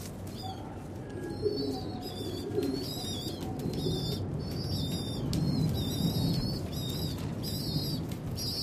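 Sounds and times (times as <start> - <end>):
pigeons cooing at Blackfriars Bridge: 0.2 - 8.6
pigeon wings flapping: 2.5 - 8.6.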